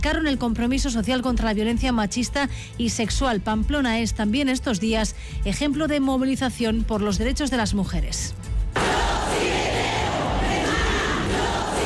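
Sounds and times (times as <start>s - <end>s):
speech: 0.0s - 8.4s
street crowd shouting chants: 8.8s - 11.8s.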